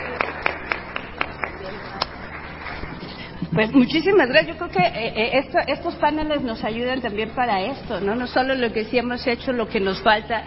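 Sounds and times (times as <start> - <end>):
scattered claps from a small audience: 0.0 - 3.2
low murmur: 0.0 - 10.4
speech: 3.6 - 10.4.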